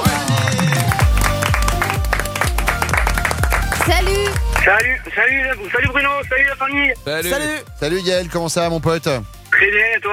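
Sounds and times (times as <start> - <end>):
audience applause welcoming a contestant on a French radio game show: 0.0 - 5.1
rhythmic music jingle with a steady bass beat: 0.0 - 10.1
speech: 4.7 - 10.1.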